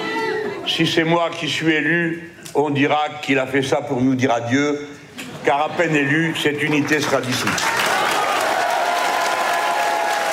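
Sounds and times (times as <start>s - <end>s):
speech: 0.7s - 7.8s
standing ovation applause from a large crowd: 6.6s - 10.3s.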